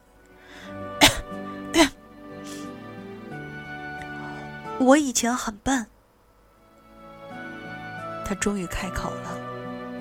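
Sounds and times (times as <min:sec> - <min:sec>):
coughing: 0:01.0 - 0:02.7
speech: 0:04.8 - 0:06.0, 0:08.3 - 0:09.5.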